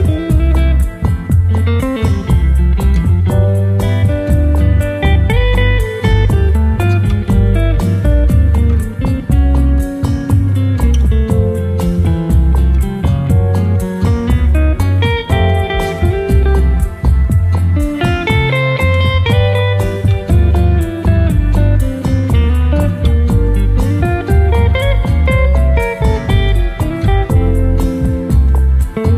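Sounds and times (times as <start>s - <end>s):
bossa nova music: 0.0s - 29.1s.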